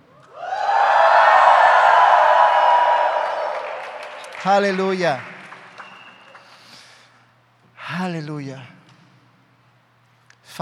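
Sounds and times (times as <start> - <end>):
audience shouting for joy: 0.2 - 5.0
speech: 4.4 - 5.3, 8.0 - 8.8.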